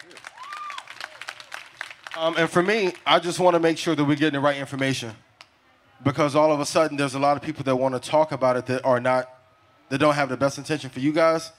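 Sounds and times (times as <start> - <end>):
small group clapping: 0.0 - 3.1
whoop or whistle: 0.3 - 1.2
speech: 2.2 - 5.2, 6.0 - 11.5.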